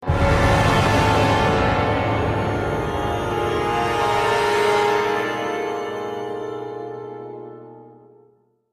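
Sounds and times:
heavy combat music outro: 0.0 - 6.2.

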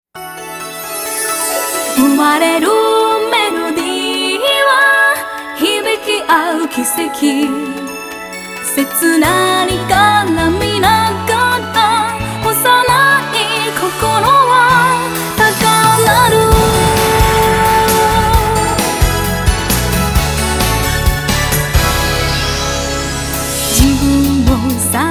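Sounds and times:
haunting melody: 0.2 - 25.0.

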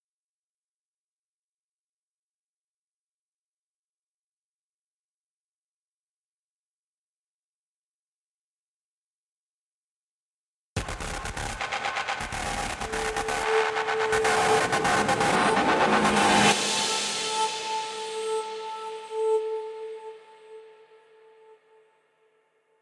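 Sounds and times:
guitar theme: 11.2 - 20.9.

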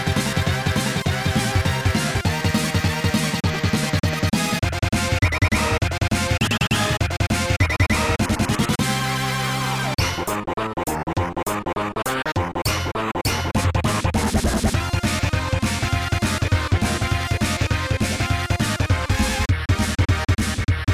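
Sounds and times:
blues music: 0.0 - 20.9.

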